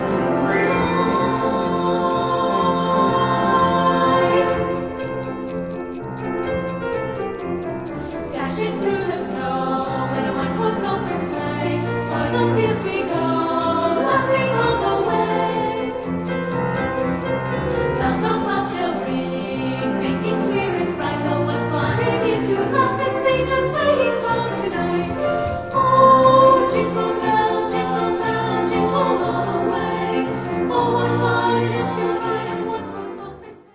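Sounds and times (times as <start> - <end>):
festive music: 0.2 - 33.7.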